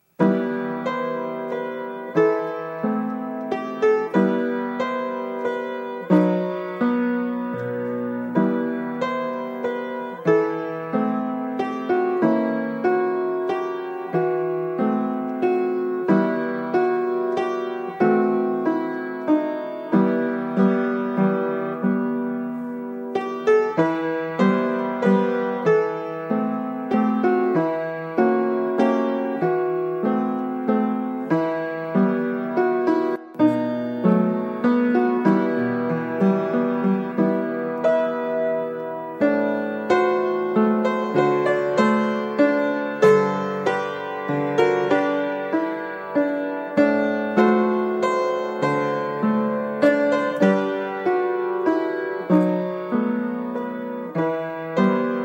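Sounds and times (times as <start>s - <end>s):
piano: 0.0s - 55.2s.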